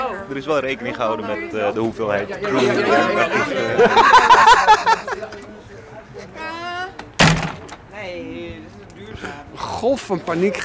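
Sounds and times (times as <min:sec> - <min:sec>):
speech: 0:00.3 - 0:06.6, 0:08.0 - 0:10.6
laughter: 0:02.2 - 0:06.9
door swinging shut: 0:07.1 - 0:07.9.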